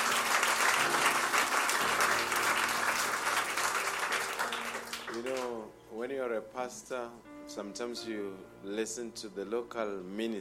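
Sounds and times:
audience applause: 0.0 - 5.5
speech: 6.4 - 10.3.

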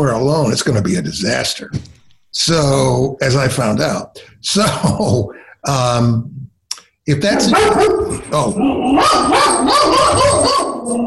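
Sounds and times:
speech: 0.0 - 6.4, 7.1 - 11.0
person imitating the big bark of a medium-sized dog: 7.4 - 11.0.

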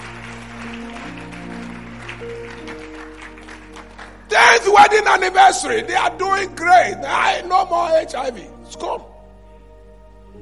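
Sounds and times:
audience clapping hands: 0.0 - 5.3
speech: 4.6 - 9.1.

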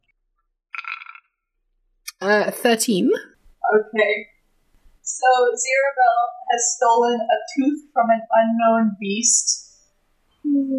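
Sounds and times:
dice rolling: 0.8 - 1.2
speech: 2.2 - 4.3, 5.1 - 9.6, 10.4 - 10.7.

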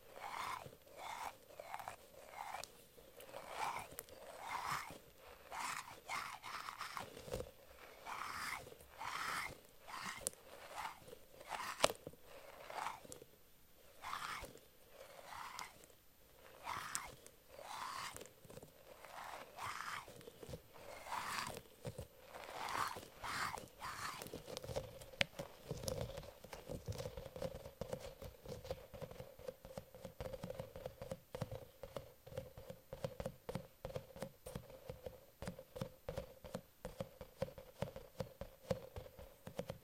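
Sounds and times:
mermaid brushes strokes: 0.0 - 26.7
faint steady hum: 0.0 - 39.8
squishy octopus toy squeezed, squelching: 0.1 - 13.2, 13.8 - 27.4.

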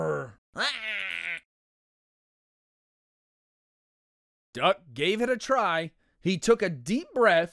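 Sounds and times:
voice imitating an elephant trumpeting: 0.6 - 1.4
speech: 4.6 - 7.5.

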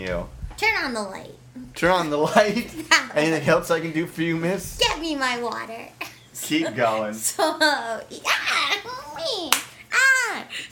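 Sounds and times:
speech: 0.0 - 9.6
hand slapping onto a leg: 9.5 - 9.8.

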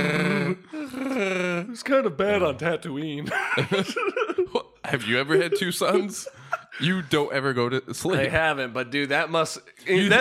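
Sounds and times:
voice imitating a Wookiee growl: 0.0 - 1.7
speech: 1.8 - 10.1
laughter: 3.2 - 7.3.

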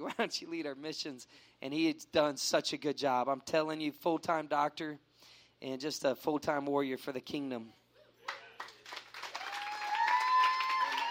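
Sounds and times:
speech: 0.0 - 7.8
audience clapping: 8.2 - 11.0
cheers and whoops: 9.2 - 11.0.

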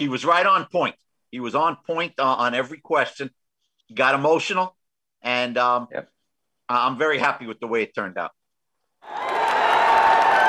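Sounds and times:
speech: 0.0 - 6.1, 6.7 - 8.4
fans cheering and clapping: 9.0 - 10.4.

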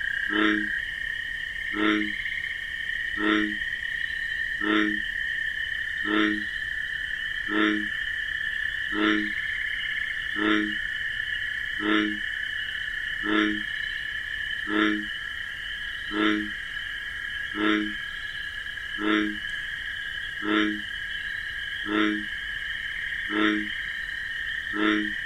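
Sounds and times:
bullfrog croaking: 0.0 - 25.2
crickets trilling: 0.0 - 25.2.

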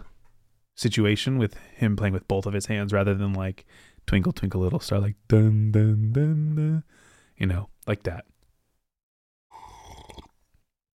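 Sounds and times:
speech: 0.8 - 8.3
person slurping a drink: 9.5 - 10.4.

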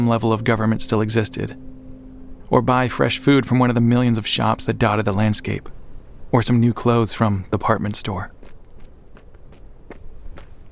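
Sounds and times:
speech: 0.0 - 1.7, 2.5 - 8.4
low rumbling background: 0.0 - 10.6
footsteps creeping up steps: 8.3 - 10.6.

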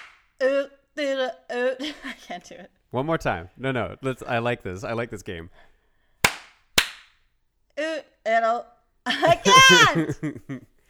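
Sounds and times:
hand claps: 0.0 - 0.3, 6.2 - 7.2
speech: 0.4 - 5.7, 7.8 - 10.7
laughter: 9.1 - 10.7.

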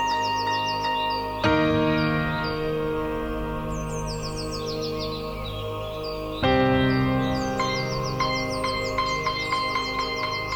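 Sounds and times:
bird chirps and trills: 0.0 - 10.5.

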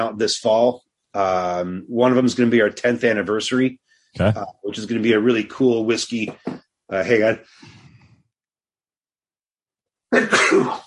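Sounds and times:
speech: 0.0 - 7.8
sneeze: 10.2 - 10.8.

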